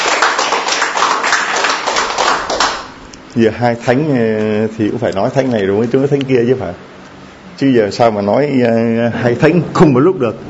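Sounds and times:
congregation clapping during a Catholic homily for Saints Cornelius and Cyprian: 0:00.0 - 0:03.0
speech: 0:03.4 - 0:06.9, 0:07.6 - 0:10.4.

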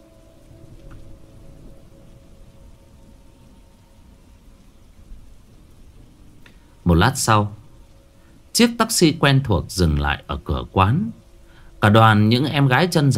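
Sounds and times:
faint steady hum: 0:00.0 - 0:13.1
steady rain hiss: 0:00.0 - 0:13.1
speech: 0:06.9 - 0:07.6, 0:08.6 - 0:11.2, 0:11.8 - 0:13.1.

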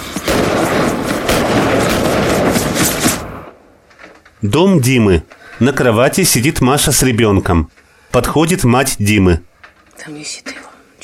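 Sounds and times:
distant gunshots: 0:00.0 - 0:03.9
speech: 0:04.4 - 0:11.0.

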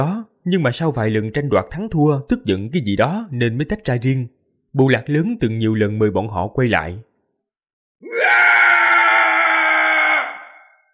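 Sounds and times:
speech: 0:00.0 - 0:07.1
long distant scream: 0:08.1 - 0:10.9.

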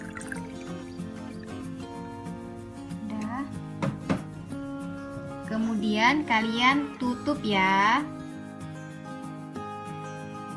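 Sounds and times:
600 ml of water poured in while cooking: 0:00.0 - 0:02.0
speech: 0:05.6 - 0:08.2.

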